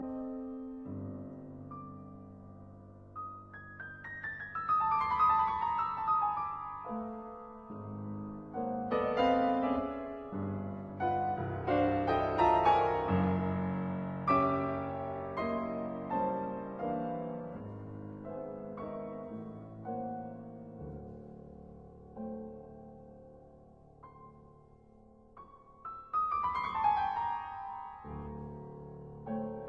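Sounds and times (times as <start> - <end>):
piano sonata: 0.0 - 29.6.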